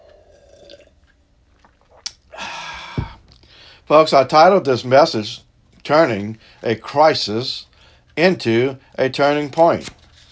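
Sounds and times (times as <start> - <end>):
person sipping a drink: 0.0 - 3.5
speech: 3.9 - 10.0.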